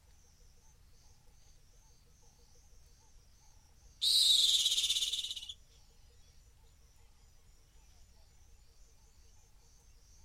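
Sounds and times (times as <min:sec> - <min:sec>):
rock hyrax pulsing shriek: 0:04.0 - 0:05.5.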